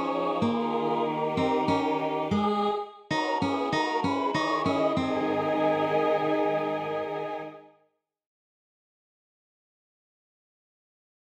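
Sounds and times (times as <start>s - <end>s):
tenor singing national anthem: 0.0s - 7.6s.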